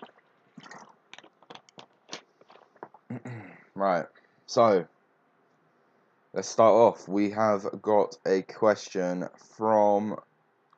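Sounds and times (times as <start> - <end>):
person drinking water: 0.0 - 3.3
speech: 3.1 - 4.9, 6.3 - 10.3.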